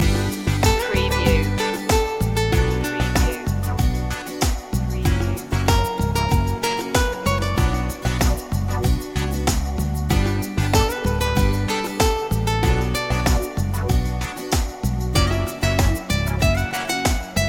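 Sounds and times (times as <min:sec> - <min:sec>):
rhythm loop: 0:00.0 - 0:17.4.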